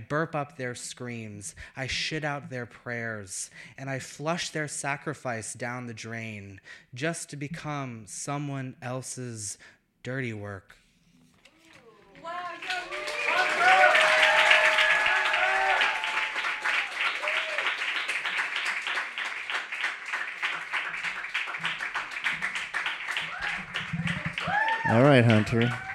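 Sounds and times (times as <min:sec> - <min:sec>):
speech: 0:00.1 - 0:10.8, 0:24.9 - 0:25.9
crowd clapping: 0:11.8 - 0:25.9
whoops and cheers: 0:11.9 - 0:17.8, 0:23.2 - 0:25.9.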